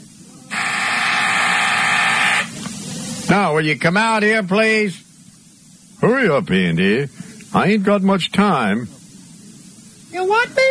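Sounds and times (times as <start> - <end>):
office intercom electric buzzer: 0.5 - 2.6
speech: 3.3 - 5.0, 6.1 - 9.0, 10.1 - 10.7.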